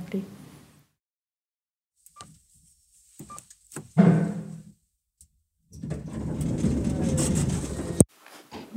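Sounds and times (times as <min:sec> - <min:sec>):
mechanical elevator doors opening: 0:05.7 - 0:08.1.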